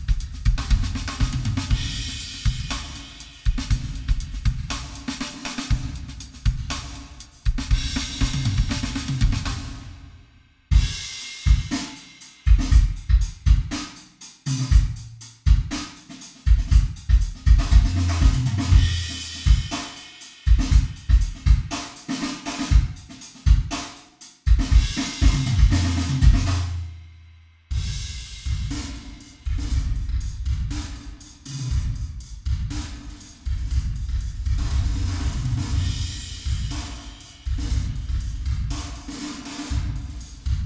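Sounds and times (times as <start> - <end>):
drums with reverb: 0.0 - 40.6.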